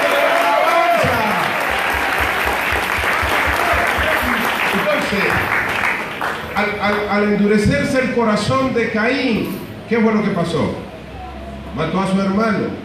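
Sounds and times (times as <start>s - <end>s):
audience applause: 0.0s - 7.1s
speech: 6.6s - 10.8s, 11.7s - 12.8s.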